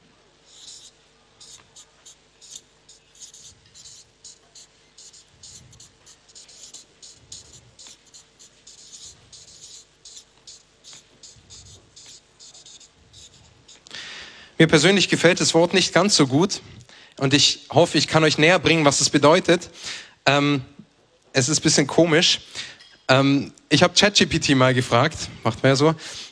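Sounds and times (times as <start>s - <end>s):
pen scratching while someone writes something down: 0.5s - 13.8s
speech: 14.6s - 20.8s, 21.4s - 22.5s, 23.1s - 26.2s.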